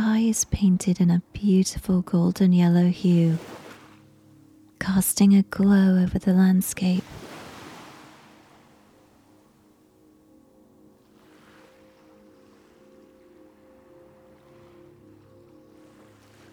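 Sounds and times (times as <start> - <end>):
speech: 0.3 - 3.6, 4.8 - 7.2
gentle ocean waves on shore: 2.7 - 4.8, 6.7 - 16.5.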